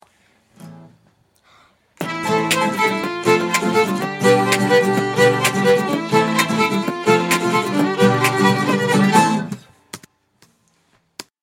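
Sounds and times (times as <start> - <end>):
fiddle: 2.0 - 9.6.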